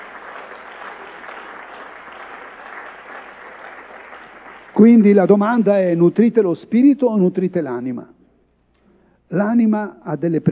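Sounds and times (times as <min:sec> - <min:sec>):
audience applause: 0:00.0 - 0:04.8
speech: 0:04.8 - 0:08.1, 0:09.3 - 0:10.5.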